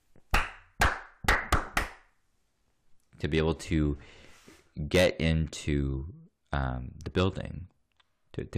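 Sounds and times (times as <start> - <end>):
hands clapping a rhythm to quiet schoolchildren: 0.1 - 2.2
speech: 3.2 - 4.2, 4.8 - 7.7, 8.4 - 8.5.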